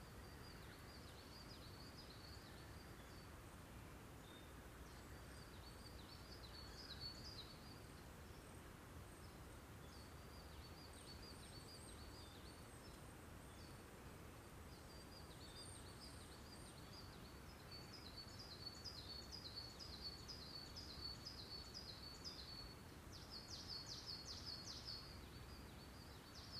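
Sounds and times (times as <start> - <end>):
dawn chorus of small birds chirping at Yunomaru Plateau: 0.0 - 26.5
low rumble and hiss: 0.0 - 26.5.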